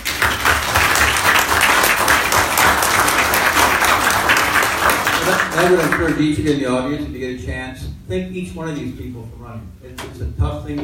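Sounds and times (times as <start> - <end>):
audience applauding election candidates: 0.0 - 6.3
speech: 5.6 - 10.8.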